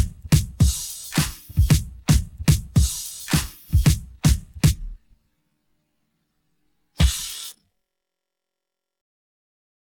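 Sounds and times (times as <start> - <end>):
rock drums: 0.0 - 5.0, 7.0 - 7.6.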